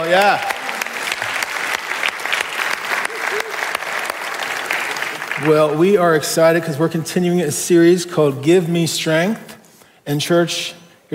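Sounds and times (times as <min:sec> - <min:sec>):
speech: 0:00.0 - 0:00.5, 0:05.4 - 0:09.5, 0:10.1 - 0:11.1
audience clapping: 0:00.0 - 0:06.2.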